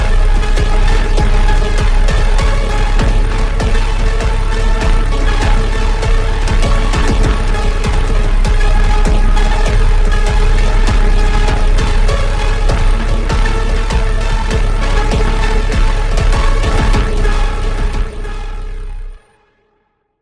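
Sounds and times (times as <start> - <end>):
slowed reverbed deep flanger echo: 0.0 - 19.2.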